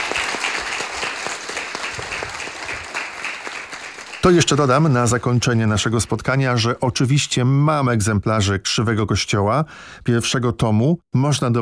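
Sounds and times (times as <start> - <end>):
audience applause: 0.0 - 5.2
speech: 4.2 - 11.6.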